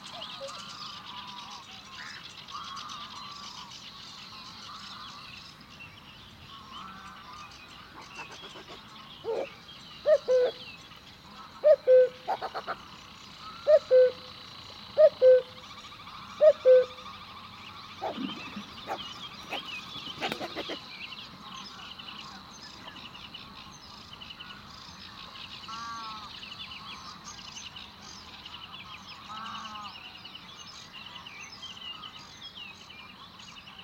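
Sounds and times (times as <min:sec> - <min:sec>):
birds chirping: 0:00.0 - 0:33.8
cuckoo calling: 0:08.0 - 0:10.7, 0:11.6 - 0:12.8, 0:13.4 - 0:15.6, 0:16.3 - 0:17.2, 0:17.9 - 0:21.0.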